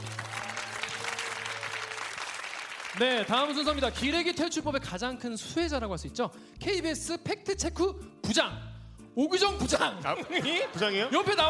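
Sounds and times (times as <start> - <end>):
applause: 0.0 - 4.4
speech: 3.0 - 11.4
laughter: 9.9 - 11.4.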